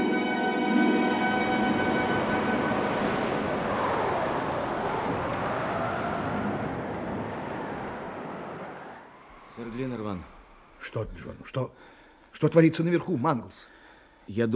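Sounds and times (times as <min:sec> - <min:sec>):
high whistling tones of hurricane wind: 0:00.0 - 0:10.9
waves breaking beneath the gale: 0:00.7 - 0:10.8
hurricane wind roaring at sea: 0:01.0 - 0:10.8
speech: 0:09.6 - 0:14.5.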